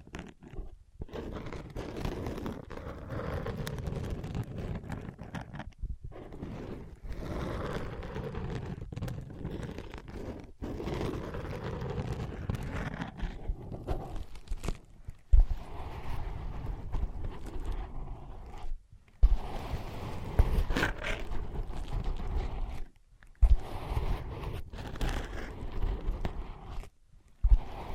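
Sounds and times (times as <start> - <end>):
ear pads tapped, scratched and traced: 0.0 - 27.9.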